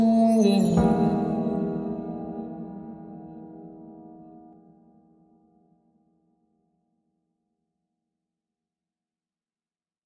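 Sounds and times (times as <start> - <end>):
slowed reverb music: 0.0 - 5.3.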